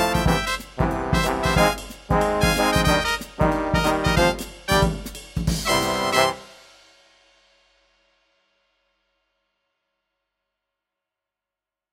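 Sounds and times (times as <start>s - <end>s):
Vegas glitz jazz music: 0.0s - 6.8s.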